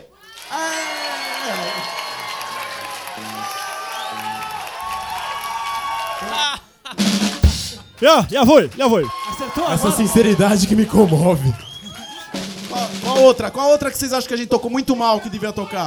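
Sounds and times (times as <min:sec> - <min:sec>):
audience applause and cheering: 0:00.3 - 0:06.4
speech: 0:08.0 - 0:11.6, 0:13.2 - 0:15.8.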